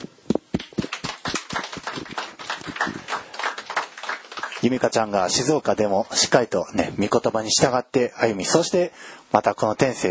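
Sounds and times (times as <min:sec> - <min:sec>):
audience applause: 0:00.6 - 0:05.1
speech: 0:04.6 - 0:10.0.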